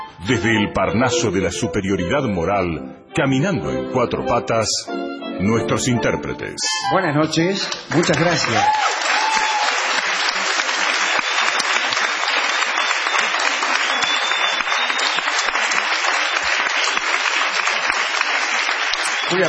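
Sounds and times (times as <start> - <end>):
speech: 0.2 - 9.2
audience applause and ovation: 7.7 - 19.4.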